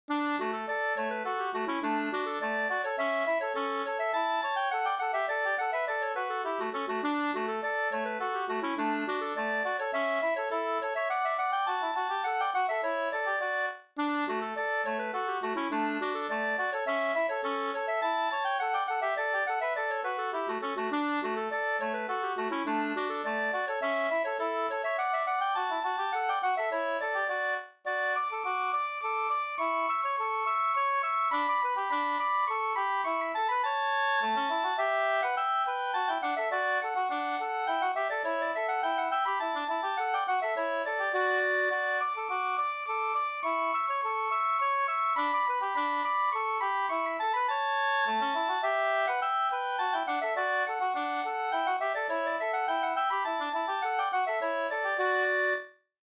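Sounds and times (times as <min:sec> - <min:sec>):
two-part slangpolska: 0:00.1 - 0:55.6.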